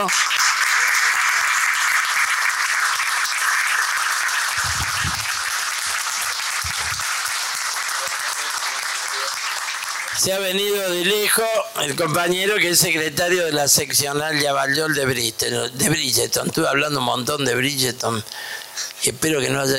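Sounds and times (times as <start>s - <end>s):
speech: 0.0s - 0.4s, 10.2s - 19.7s
audience applause welcoming a guest: 0.0s - 11.6s.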